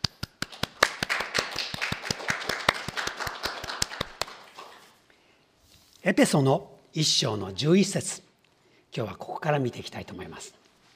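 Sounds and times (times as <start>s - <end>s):
audience clapping: 0.0s - 4.9s
speech: 6.0s - 8.3s, 9.0s - 10.6s.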